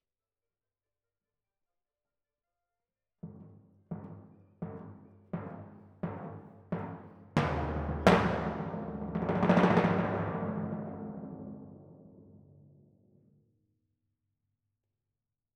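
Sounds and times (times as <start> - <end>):
timpani in F: 3.9 - 12.8.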